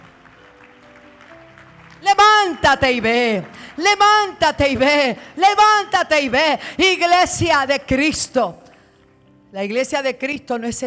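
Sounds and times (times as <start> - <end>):
audience applause: 0.0 - 4.3
speech: 2.0 - 8.6, 9.5 - 10.8.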